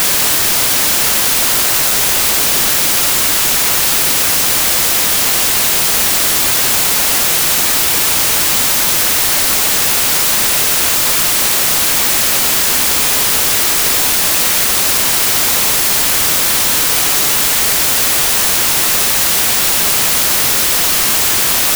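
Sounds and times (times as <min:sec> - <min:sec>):
white noise: 0:00.0 - 0:21.7.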